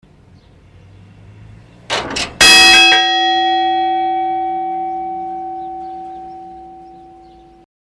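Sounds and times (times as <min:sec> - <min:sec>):
bell ringing: 0:02.4 - 0:07.6.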